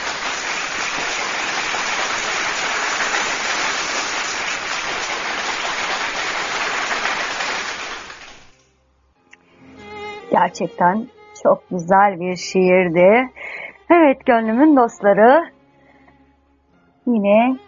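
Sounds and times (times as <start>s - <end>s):
audience applause: 0.0s - 8.6s
speech: 10.4s - 13.4s, 14.1s - 15.6s, 17.1s - 17.6s.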